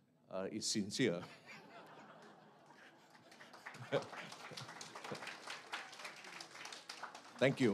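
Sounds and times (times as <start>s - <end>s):
speech: 0.3s - 1.6s, 3.8s - 5.3s, 7.4s - 7.7s
laughter: 1.2s - 5.4s
audience applause: 2.6s - 7.7s.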